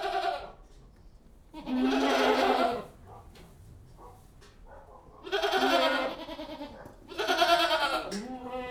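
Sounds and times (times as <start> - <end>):
goats bleating inside a goat house: 0.0 - 0.5, 1.6 - 2.9, 5.2 - 8.6.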